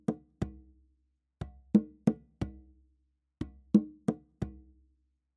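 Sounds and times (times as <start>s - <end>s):
African rhythm at 90 bpm: 0.0s - 0.7s, 1.4s - 2.7s, 3.4s - 4.7s.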